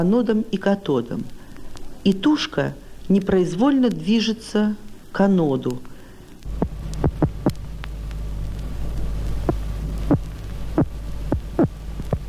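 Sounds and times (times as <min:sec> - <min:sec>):
speech: 0:00.0 - 0:01.4, 0:02.0 - 0:05.9
steady low electrical hum: 0:00.0 - 0:12.2
electric catfish defensive electric pulses: 0:06.5 - 0:12.2.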